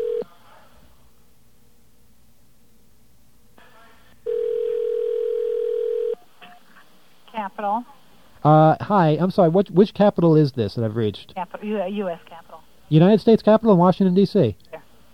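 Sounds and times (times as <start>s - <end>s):
telephone line ringing: 0.0s - 0.2s, 4.3s - 6.2s
speech: 7.6s - 14.6s.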